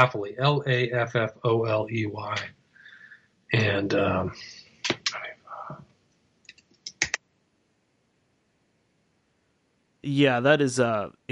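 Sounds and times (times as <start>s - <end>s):
speech: 0.0s - 2.6s, 3.5s - 5.9s, 10.0s - 11.3s
typing on a computer keyboard: 6.5s - 7.2s.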